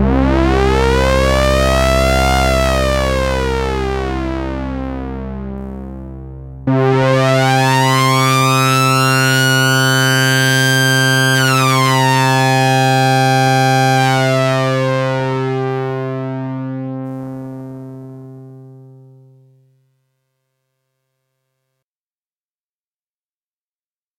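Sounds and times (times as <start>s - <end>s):
synthesizer VCO2 modulated by filter envelope: 0.0s - 19.5s.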